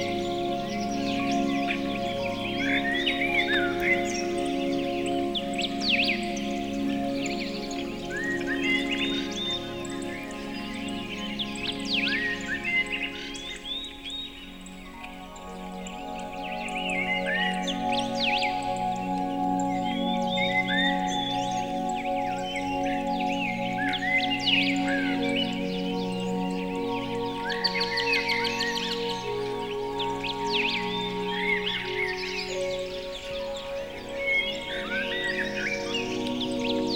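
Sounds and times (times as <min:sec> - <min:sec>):
birds singing: 0:00.0 - 0:36.9
sustained instrumental music: 0:00.0 - 0:36.9.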